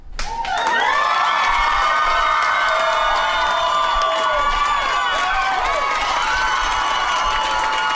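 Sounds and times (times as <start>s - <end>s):
crowd cheering: 0.2s - 7.9s.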